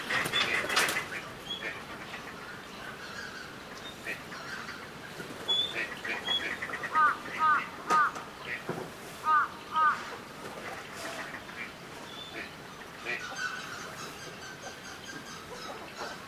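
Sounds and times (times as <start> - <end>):
falcated duck calls: 0.0 - 2.4, 5.5 - 14.1.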